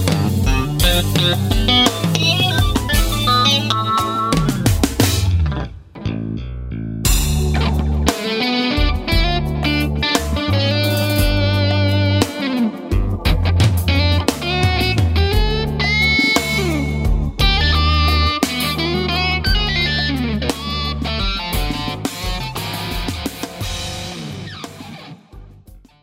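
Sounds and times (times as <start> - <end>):
electric guitar playing blues with chorus and distortion: 0.0 - 26.0.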